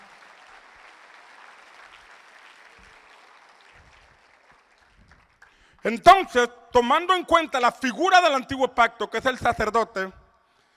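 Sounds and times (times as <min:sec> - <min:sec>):
audience applause: 0:00.0 - 0:05.9
speech: 0:05.8 - 0:10.2.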